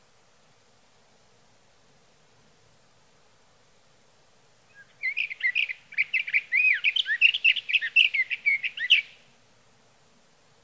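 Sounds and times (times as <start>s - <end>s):
Sage thrasher singing: 4.7s - 9.2s.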